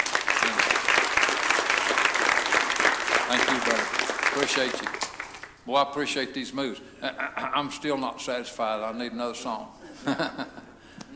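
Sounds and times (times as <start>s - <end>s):
audience applause: 0.0s - 5.6s
speech: 4.4s - 5.0s, 5.6s - 10.6s
laughter: 9.8s - 11.1s.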